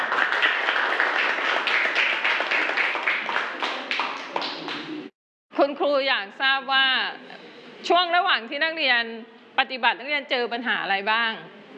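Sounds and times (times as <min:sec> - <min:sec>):
students clapping: 0:00.0 - 0:05.1
speech: 0:05.6 - 0:11.6.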